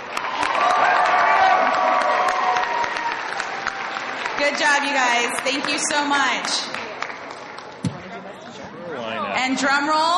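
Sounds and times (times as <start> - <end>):
cheers and voices: 0.0 - 5.9
audience applause: 0.0 - 8.2
speech: 4.5 - 6.8, 9.4 - 10.1.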